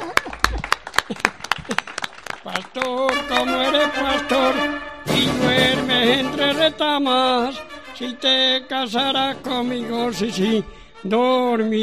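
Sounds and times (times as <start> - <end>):
audience hand clapping at a sung folk performance about shepherds: 0.0 - 4.2
speech: 2.6 - 11.8.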